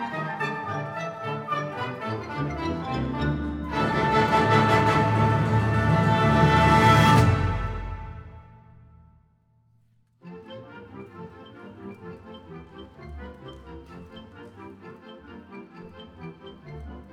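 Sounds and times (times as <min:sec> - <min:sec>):
symphonic band playing: 0:00.0 - 0:08.8.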